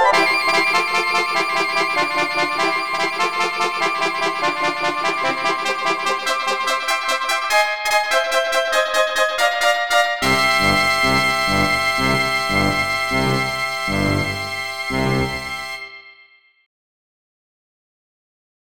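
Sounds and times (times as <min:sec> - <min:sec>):
fanfare: 0:00.1 - 0:16.2.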